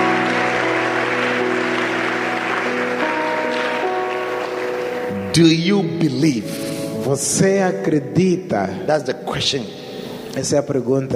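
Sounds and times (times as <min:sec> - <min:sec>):
audience applause: 0:00.0 - 0:05.6
speech: 0:05.4 - 0:09.8, 0:10.4 - 0:11.1.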